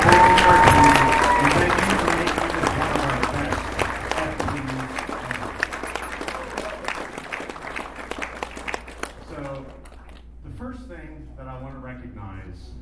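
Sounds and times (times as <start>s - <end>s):
audience applause: 0.0s - 10.2s.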